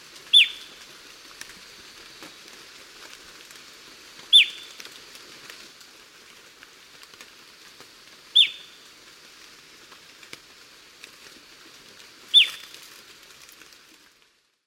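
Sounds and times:
Rufous-capped Antthrush calling in South America's Eastern Lowlands: 0.3 - 0.9, 4.3 - 4.8, 8.4 - 8.8, 12.3 - 12.8.

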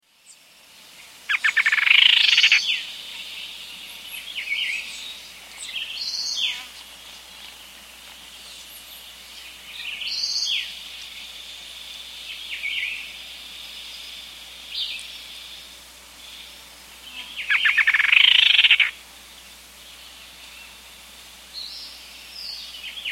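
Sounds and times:
rufous-winged antwren rapid stuttering trills in South America: 1.3 - 2.8, 17.4 - 18.9.

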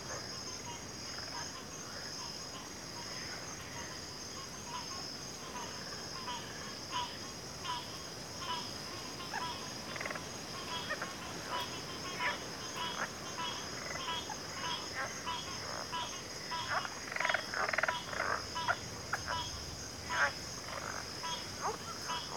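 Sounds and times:
cricket chorus: 0.0 - 22.3
frog croaks: 0.0 - 22.3.

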